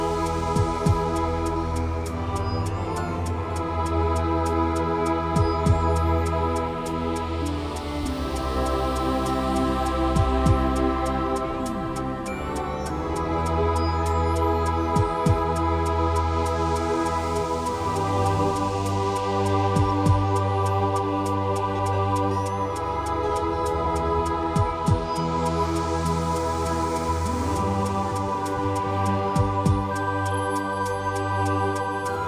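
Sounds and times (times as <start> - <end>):
instrumental lullaby: 0.2 - 25.8, 26.4 - 32.2.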